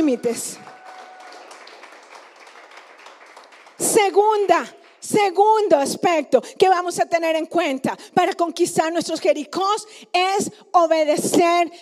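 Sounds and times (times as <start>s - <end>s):
speech: 0.0s - 0.8s, 3.8s - 11.8s
audience applause: 0.0s - 5.0s.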